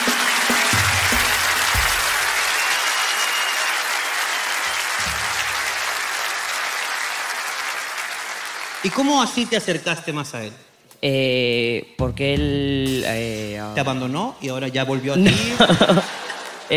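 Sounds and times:
audience applause: 0.0 - 9.7
speech: 8.8 - 16.7
laughter: 13.7 - 16.2.

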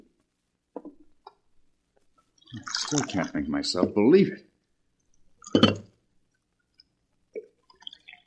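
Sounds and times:
coffee being poured into cup: 2.4 - 3.5, 7.4 - 8.2
speech: 2.7 - 4.5.

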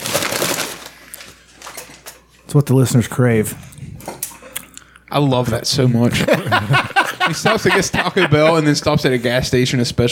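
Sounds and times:
bag crumpling: 0.0 - 1.9
speech: 2.5 - 3.7, 5.1 - 10.1
laughter: 6.1 - 9.3.

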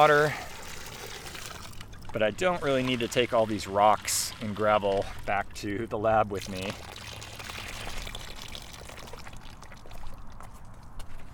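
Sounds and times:
speech: 0.0 - 0.4, 2.1 - 6.9
water poured from bucket through fine mesh net: 0.0 - 5.4, 6.3 - 10.4.

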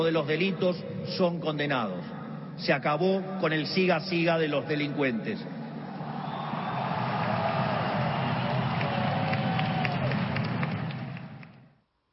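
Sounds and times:
speech: 0.0 - 5.6
crowd ovation at a political rally in Plaza de los Dos Congresos: 5.8 - 11.7.

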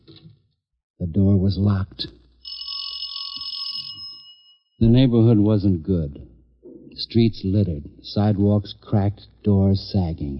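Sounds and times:
speech: 1.1 - 2.2, 4.8 - 6.3, 7.1 - 10.3
doorbell ringing: 2.4 - 4.7.

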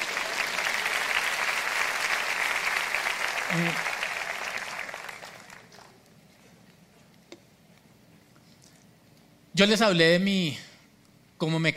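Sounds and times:
audience applause: 0.0 - 6.0
speech: 3.5 - 4.0, 9.6 - 10.6, 11.4 - 11.7.

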